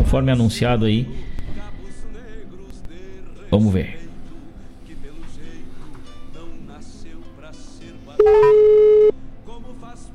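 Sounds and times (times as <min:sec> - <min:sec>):
speech: 0:00.1 - 0:01.3, 0:03.5 - 0:04.0
telephone tone as a phone call is placed: 0:08.2 - 0:09.1.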